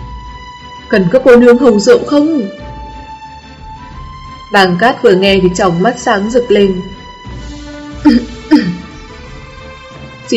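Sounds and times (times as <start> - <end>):
speech: 0.9 - 2.7, 4.5 - 7.0, 8.0 - 8.8
dry cough: 8.0 - 8.9.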